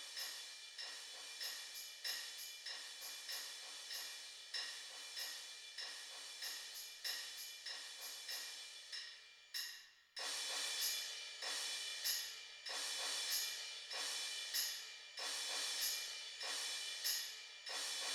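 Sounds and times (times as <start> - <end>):
suspended cymbal: 0.0 - 18.1
tambourine: 0.0 - 18.1.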